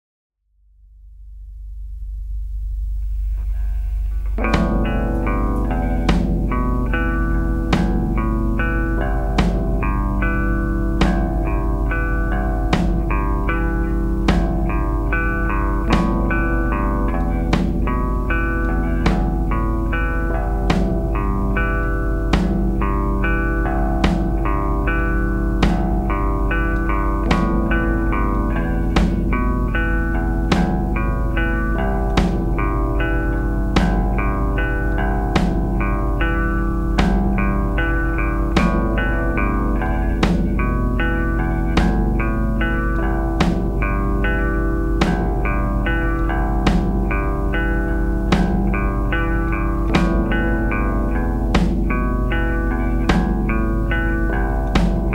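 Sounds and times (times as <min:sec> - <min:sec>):
instrumental music: 0:02.8 - 0:55.1.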